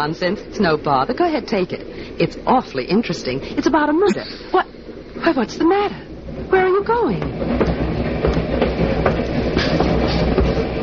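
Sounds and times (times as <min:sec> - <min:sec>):
speech: 0:00.0 - 0:07.9
moving train carriage rumble heard from inside: 0:00.0 - 0:10.8
train wheels clacking over rail joints: 0:06.6 - 0:10.8.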